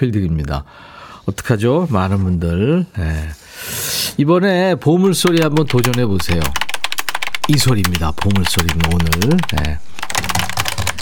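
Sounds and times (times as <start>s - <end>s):
speech: 0.0s - 6.6s, 7.5s - 9.9s
computer keyboard typing: 5.0s - 10.9s.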